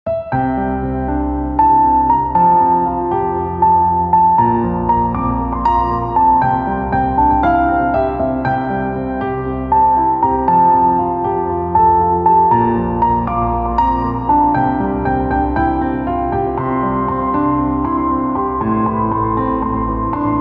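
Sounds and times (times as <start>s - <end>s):
instrumental piano ringtone: 0.1s - 20.3s.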